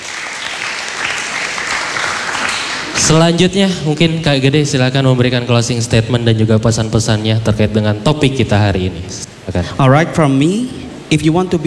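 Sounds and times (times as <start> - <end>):
audience applause: 0.0 - 3.4
speech: 3.0 - 11.6.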